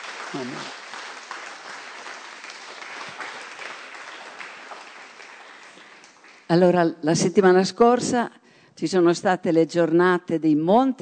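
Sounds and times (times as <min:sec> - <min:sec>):
audience applause: 0:00.0 - 0:06.5
speech: 0:00.3 - 0:00.8, 0:06.5 - 0:11.0.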